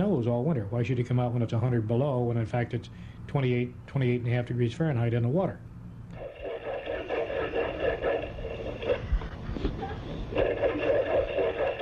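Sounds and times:
speech: 0.2 - 5.7
seal underwater vocalization: 6.2 - 9.2, 9.8 - 11.8.

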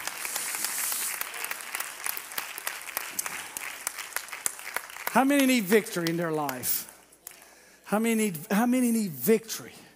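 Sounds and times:
audience clapping hands: 0.0 - 7.5
speech: 5.2 - 6.9, 7.9 - 9.8.

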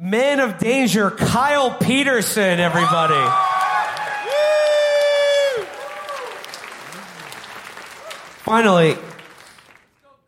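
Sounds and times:
speech: 0.1 - 3.5, 8.5 - 9.1
audience member whooping: 2.8 - 7.2
live audience crowd noise and applause: 2.8 - 10.2.

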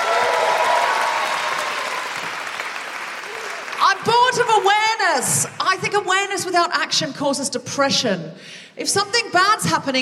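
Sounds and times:
audience applause: 0.0 - 4.7
speech: 4.3 - 9.9.

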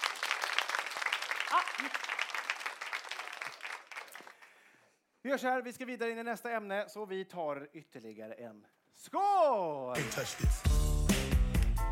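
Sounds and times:
audience applause: 0.0 - 4.6
speech: 1.5 - 2.2, 5.2 - 10.8.

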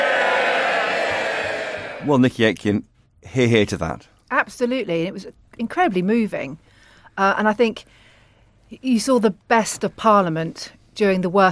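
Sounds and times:
applause in parliamentary chamber: 0.0 - 2.2
speech: 2.0 - 8.0, 8.7 - 11.5.

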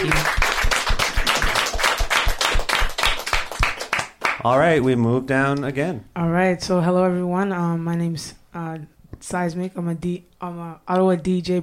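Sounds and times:
round of applause, many hands clapping: 0.0 - 4.9
speech: 4.4 - 11.6.

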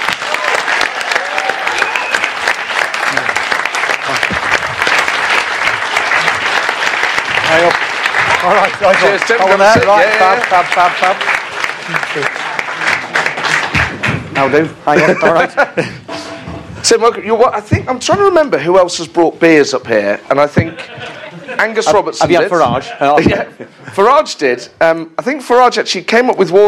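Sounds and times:
whoops and cheering voices: 0.0 - 2.4
audience applause welcoming a guest: 0.0 - 15.2
speech: 8.7 - 12.4, 14.4 - 16.0, 16.9 - 21.0, 21.6 - 26.6
laughter: 14.8 - 16.3, 20.5 - 24.1.

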